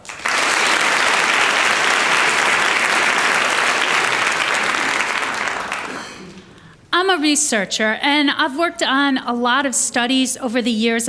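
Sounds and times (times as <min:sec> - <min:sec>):
audience applause: 0:00.0 - 0:06.5
speech: 0:07.1 - 0:11.0.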